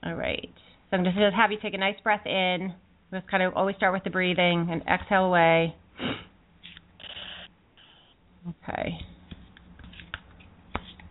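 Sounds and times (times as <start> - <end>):
speech: 0.0 - 6.2, 8.4 - 9.1
tarot cards being shuffled: 9.3 - 11.0.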